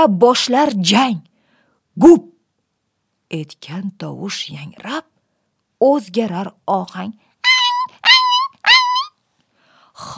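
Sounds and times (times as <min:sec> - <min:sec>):
speech: 0:00.0 - 0:01.3, 0:02.0 - 0:02.3, 0:03.3 - 0:05.1, 0:05.8 - 0:07.2, 0:10.0 - 0:10.1
dog whimpering: 0:07.4 - 0:09.2.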